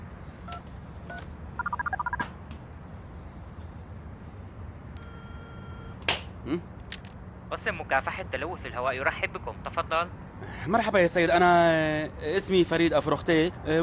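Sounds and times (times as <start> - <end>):
longer steady telephone tone: 1.6 - 2.2, 5.0 - 6.0
speech: 6.5 - 6.7, 7.5 - 13.8.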